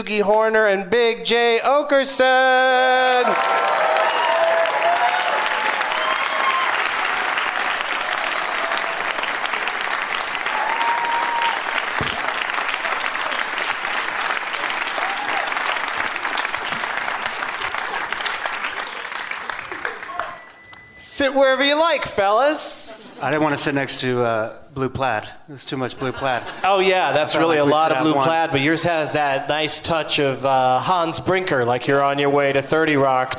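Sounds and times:
speech: 0:00.0 - 0:04.0, 0:21.2 - 0:33.3
studio audience applauding to welcome four returning guests: 0:02.4 - 0:20.6.

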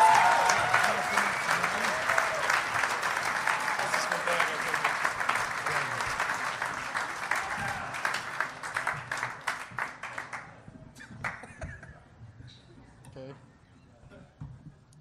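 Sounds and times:
crowd clapping: 0:00.0 - 0:11.6.

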